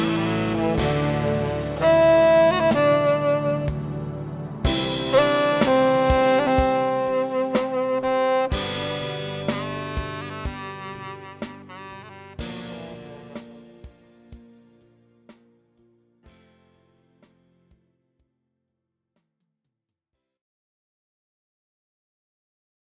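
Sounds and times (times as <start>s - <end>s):
saxophone: 0.0s - 14.1s.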